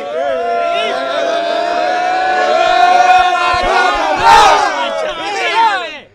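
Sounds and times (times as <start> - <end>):
large crowd shouting a chant: 0.0 - 6.0
scattered crowd yells: 0.0 - 6.0.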